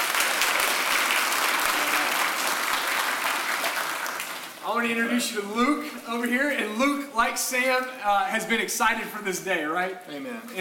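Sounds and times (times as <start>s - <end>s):
audience applause: 0.0s - 4.6s
speech: 4.7s - 10.5s.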